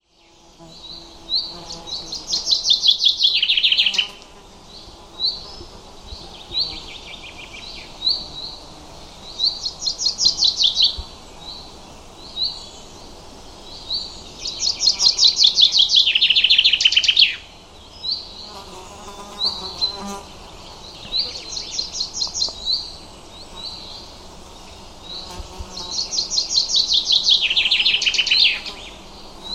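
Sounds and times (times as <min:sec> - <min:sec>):
bird chirping: 0:00.2 - 0:29.5.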